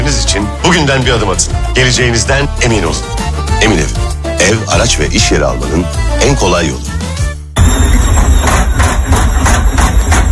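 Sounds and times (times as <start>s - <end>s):
speech: 0.1s - 7.0s
noisy washing machine running: 7.6s - 10.3s.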